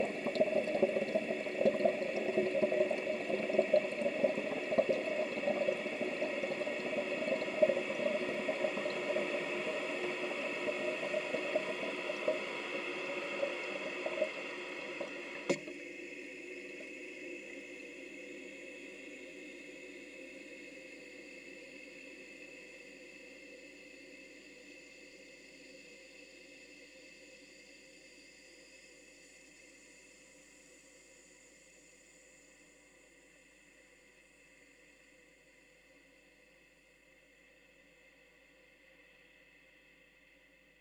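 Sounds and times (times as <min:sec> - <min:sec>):
toilet flush recorded with a contact mic: 0:00.0 - 0:15.6.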